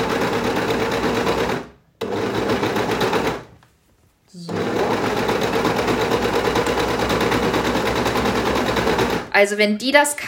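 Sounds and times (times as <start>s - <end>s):
sewing machine stitching with thread: 0.0s - 3.5s, 4.4s - 9.3s
speech: 9.4s - 10.2s.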